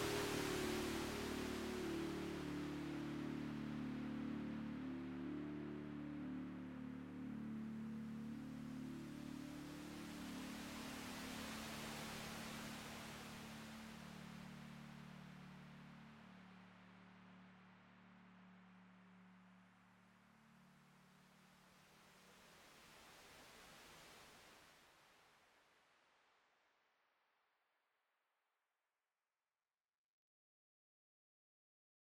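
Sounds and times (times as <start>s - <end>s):
droning waves: 0.0s - 18.4s.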